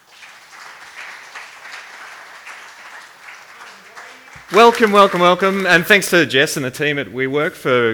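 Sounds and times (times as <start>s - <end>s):
audience applause: 0.0s - 6.1s
speech: 4.4s - 7.9s.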